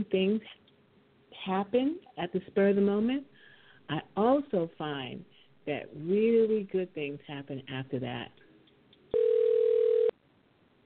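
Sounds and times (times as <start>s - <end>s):
speech: 0.0s - 0.6s, 1.4s - 3.3s, 3.9s - 8.4s
telephone ringing: 9.1s - 10.2s.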